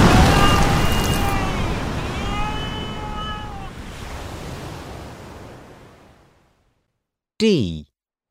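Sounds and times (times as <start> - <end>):
monster ocean wave crashing: 0.0 - 5.9
speech: 7.4 - 7.9.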